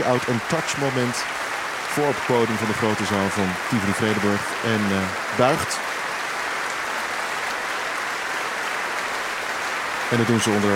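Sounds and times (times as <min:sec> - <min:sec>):
speech: 0:00.0 - 0:05.9, 0:10.1 - 0:10.7
concert audience applause: 0:00.0 - 0:10.7.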